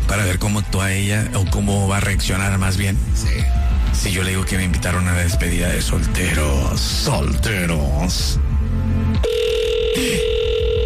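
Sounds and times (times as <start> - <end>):
speech: 0.4 - 8.5
telephone ringing: 9.2 - 10.8.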